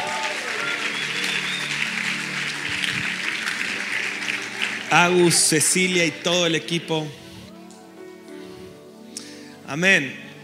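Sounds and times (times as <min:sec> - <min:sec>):
audience applause: 0:00.0 - 0:06.3
speech: 0:04.9 - 0:07.2, 0:09.7 - 0:10.2.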